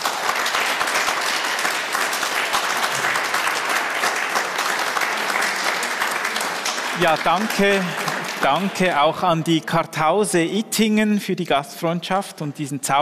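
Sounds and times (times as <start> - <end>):
audience applause: 0.0 - 9.7
speech: 7.0 - 13.0.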